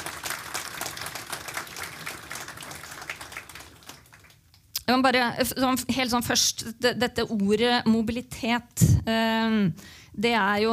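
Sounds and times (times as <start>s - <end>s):
audience applause: 0.0s - 4.5s
speech: 4.9s - 10.7s.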